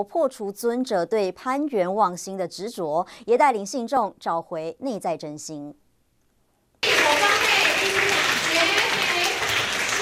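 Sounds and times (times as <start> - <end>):
speech: 0.0 - 5.8
warm applause: 6.8 - 10.0.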